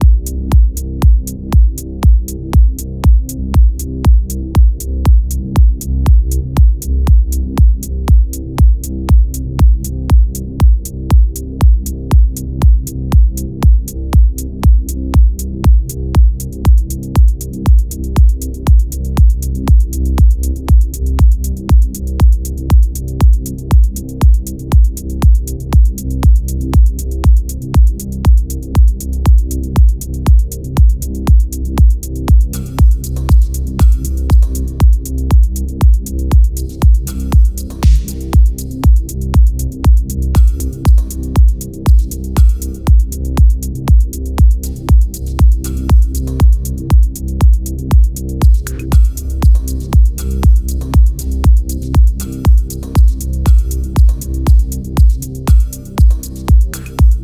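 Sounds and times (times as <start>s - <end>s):
dark minimal pumping music: 0.0s - 57.2s.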